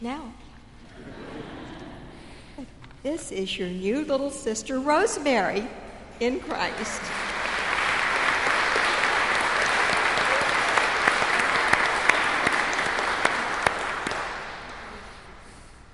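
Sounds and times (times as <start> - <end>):
speech: 0.0 - 1.2, 2.6 - 7.3
audience applauding: 6.4 - 15.6.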